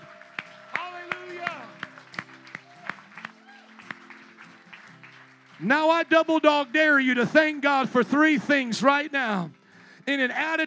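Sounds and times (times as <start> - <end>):
audience applauding: 0.0 - 7.6
speech: 5.6 - 10.6.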